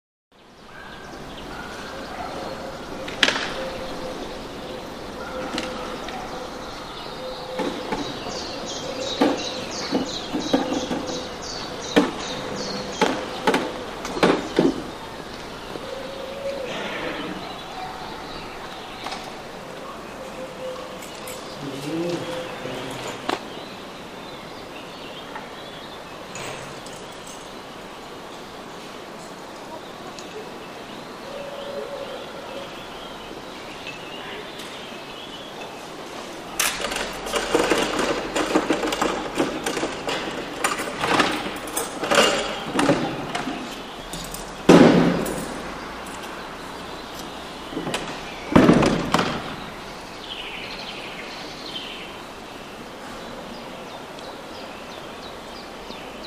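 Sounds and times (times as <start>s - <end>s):
bird song on a town street in the morning: 0.3s - 56.2s
wood pigeon cooing: 1.4s - 23.4s, 31.2s - 32.8s
doors opened and closed on a town street: 1.5s - 23.5s, 26.2s - 27.6s, 36.5s - 50.0s.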